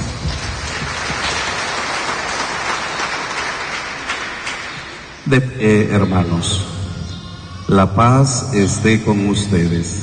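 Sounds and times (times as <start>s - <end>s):
church congregation applause during a service: 0.0s - 5.4s
speech: 5.3s - 6.7s, 7.7s - 10.0s.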